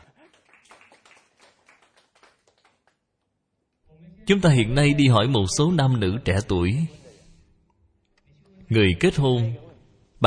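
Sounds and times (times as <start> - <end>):
audience applause: 0.0 - 3.0
speech: 4.3 - 7.0, 8.7 - 10.2.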